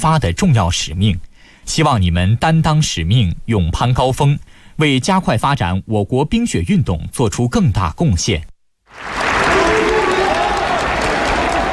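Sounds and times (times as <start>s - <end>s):
speech: 0.0s - 8.5s
athletes, coaches and staff applauding at a winter sports training base: 8.9s - 11.7s.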